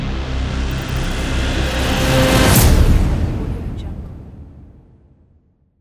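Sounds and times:
logo sting: 0:00.1 - 0:04.0.

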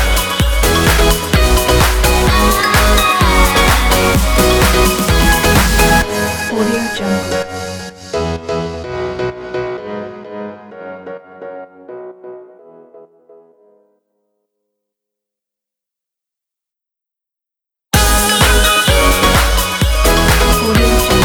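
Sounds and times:
positive pop music: 0:00.0 - 0:11.6, 0:18.0 - 0:21.2.

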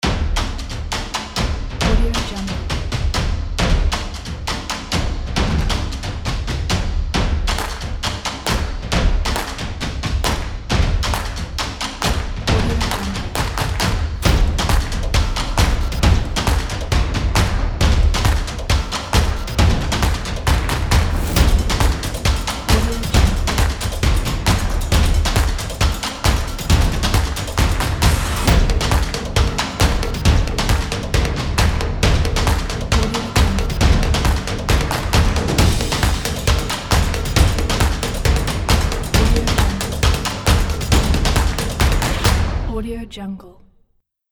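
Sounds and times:
drums: 0:00.0 - 0:42.8.

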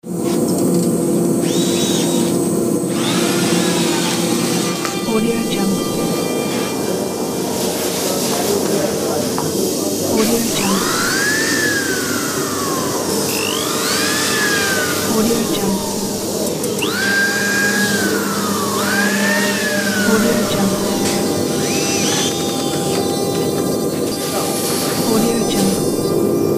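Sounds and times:
factory ambience: 0:00.1 - 0:26.5.

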